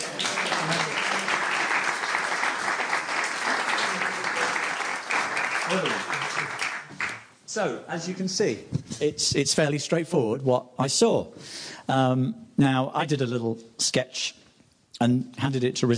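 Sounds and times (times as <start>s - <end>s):
audience applause: 0.0s - 7.3s
speech: 5.7s - 6.1s, 7.6s - 14.4s, 15.0s - 15.9s.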